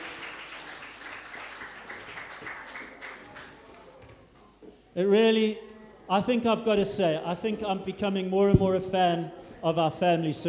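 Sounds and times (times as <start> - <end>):
audience applause: 0.0 - 3.7
speech: 5.0 - 10.4.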